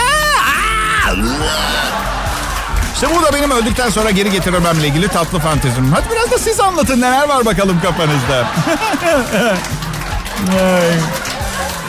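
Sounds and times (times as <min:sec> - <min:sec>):
person screaming in unbearable torture: 0:00.0 - 0:01.8
laughter: 0:00.4 - 0:11.8
speech: 0:03.0 - 0:11.3.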